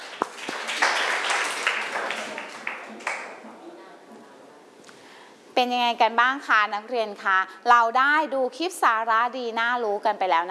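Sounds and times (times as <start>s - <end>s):
applause: 0.0s - 3.4s
speech: 5.6s - 10.5s.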